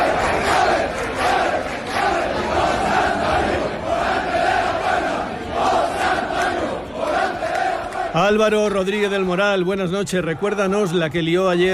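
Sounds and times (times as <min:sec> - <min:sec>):
crowd celebrating in the streets: 0:00.0 - 0:11.7
speech: 0:08.2 - 0:11.7.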